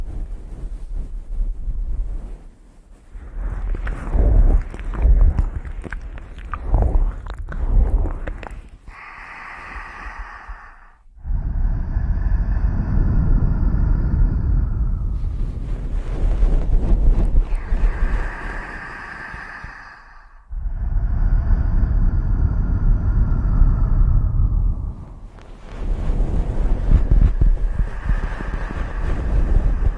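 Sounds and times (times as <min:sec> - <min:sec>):
thick muffled rumbling against the microphone: 0:00.0 - 0:29.9
ear eating wet crackly smacks: 0:03.4 - 0:08.9.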